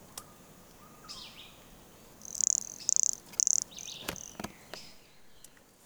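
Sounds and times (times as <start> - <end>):
toadlet calls: 0.0 - 5.4
soft bird chirps: 0.0 - 5.6
sharp clicks: 2.1 - 5.5.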